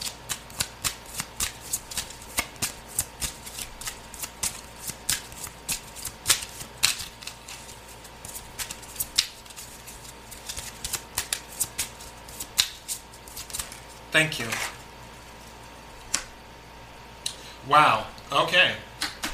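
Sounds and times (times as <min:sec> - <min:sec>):
tarot cards shuffled during a card reading: 0:00.0 - 0:14.8
speech: 0:14.2 - 0:14.7, 0:17.7 - 0:18.8.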